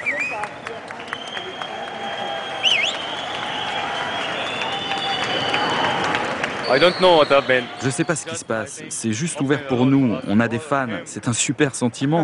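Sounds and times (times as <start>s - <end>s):
crowd applauding at Munich train station: 0.0s - 8.7s
speech: 6.7s - 12.2s.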